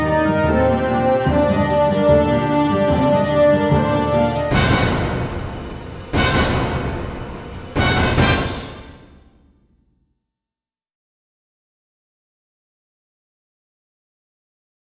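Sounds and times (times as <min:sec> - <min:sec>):
orchestral tension music: 0:00.0 - 0:09.6.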